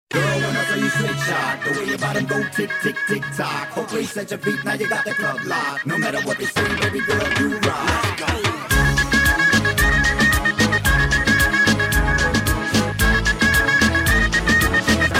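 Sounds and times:
flute: 0.1s - 15.1s.

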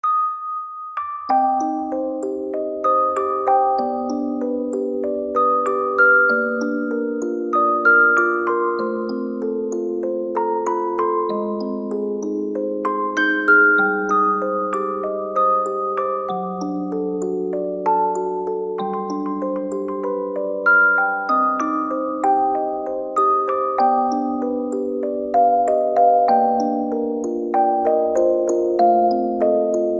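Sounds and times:
music box: 0.0s - 29.9s.

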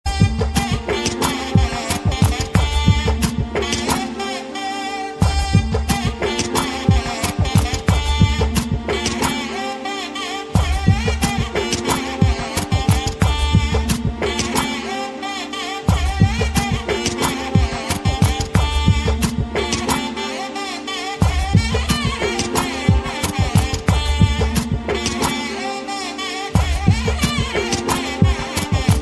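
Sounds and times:
fusion nadaswaram music: 0.1s - 29.0s.

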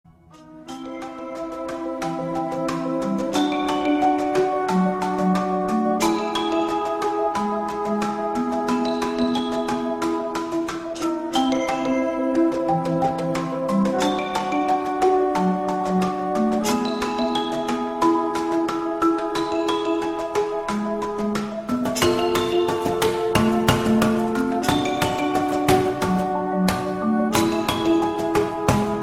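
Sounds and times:
xylophone: 0.3s - 29.0s.

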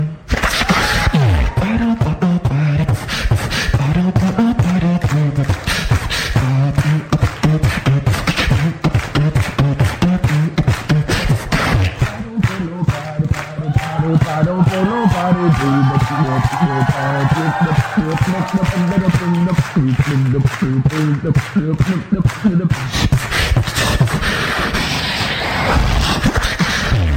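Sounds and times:
beatbox: 0.0s - 27.1s.

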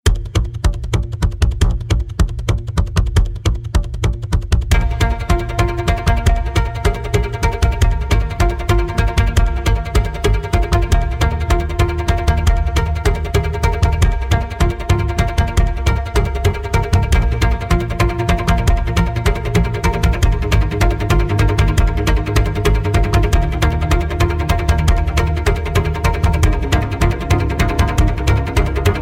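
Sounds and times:
drums: 0.0s - 29.0s.

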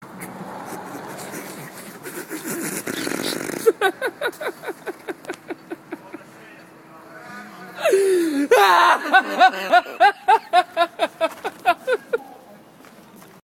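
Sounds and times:
funny laugh: 0.7s - 6.2s, 7.8s - 12.2s.

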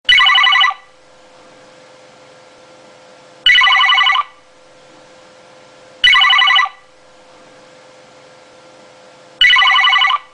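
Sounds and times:
telephone: 0.1s - 0.8s, 3.5s - 4.3s, 6.0s - 6.8s, 9.4s - 10.3s.

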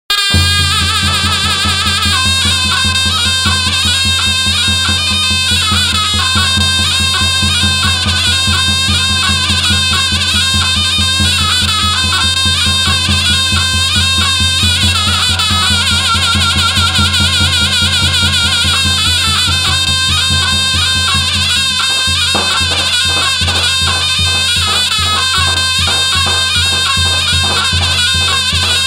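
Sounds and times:
zurna playing: 0.1s - 28.8s.

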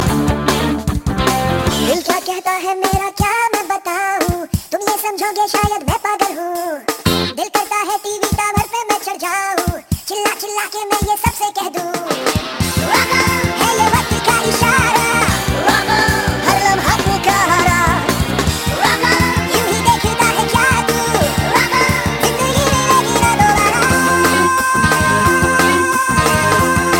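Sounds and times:
rap rock music: 0.0s - 26.9s.

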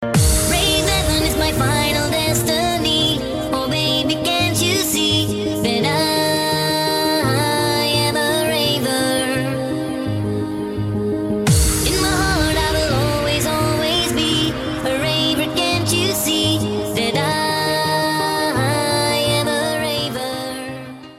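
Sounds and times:
rave music: 0.0s - 21.0s.

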